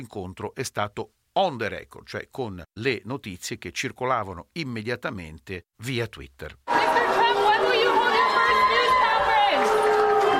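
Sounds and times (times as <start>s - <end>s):
speech: 0.0s - 7.0s
crowd applause: 6.7s - 10.3s
large crowd waiting for Donald Trump's arrival murmuring and calling out: 6.7s - 10.3s.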